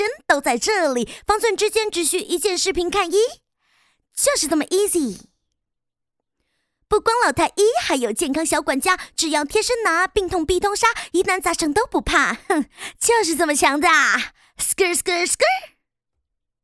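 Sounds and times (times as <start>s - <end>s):
woman rapping a cover in Chinese: 0.0s - 3.4s, 6.9s - 15.7s.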